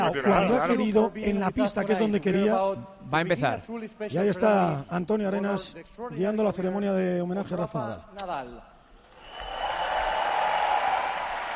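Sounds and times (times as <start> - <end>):
speech: 0.1 - 8.7
arena crowd ovation applause at Martín Carpena: 9.0 - 11.5.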